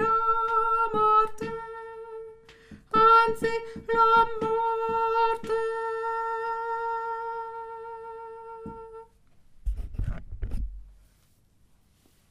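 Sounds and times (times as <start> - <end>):
soprano singing: 0.0 - 9.2.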